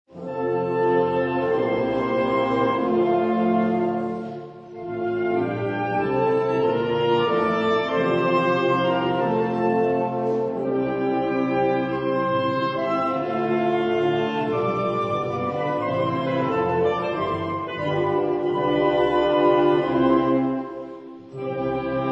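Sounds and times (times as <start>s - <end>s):
march music: 0.1s - 22.1s.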